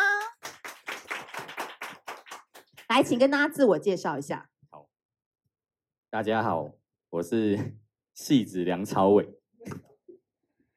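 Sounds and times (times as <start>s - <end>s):
crowd applause: 0.0s - 2.9s
speech: 2.9s - 4.5s, 6.1s - 9.8s.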